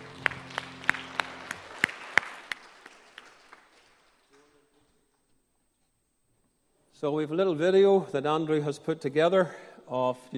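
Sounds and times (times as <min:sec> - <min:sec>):
audience applause: 0:00.0 - 0:04.6
speech: 0:07.0 - 0:10.3.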